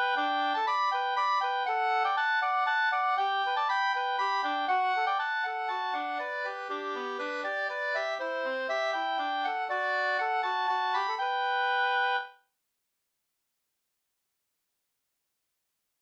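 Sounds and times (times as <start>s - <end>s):
two-part polska: 0.0s - 12.3s.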